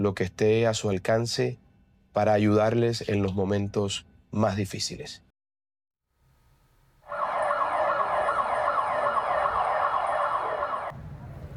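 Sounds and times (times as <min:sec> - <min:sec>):
speech: 0:00.0 - 0:05.2
earthquake warning alarm sirens in Bogotá: 0:07.0 - 0:11.0.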